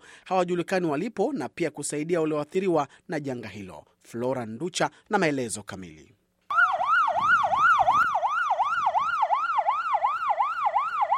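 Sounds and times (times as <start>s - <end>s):
speech: 0.3s - 6.2s
ambulance siren wailing in Sierra Leone during disaster recovery work: 6.5s - 11.1s.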